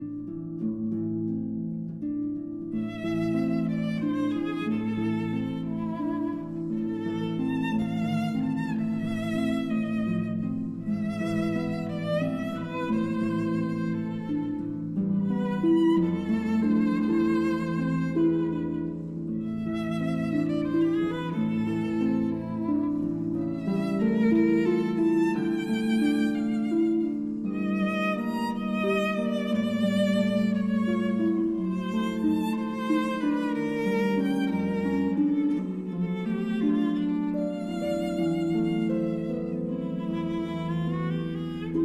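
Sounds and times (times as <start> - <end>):
berceuse for violin and harp: 0.0 - 41.8.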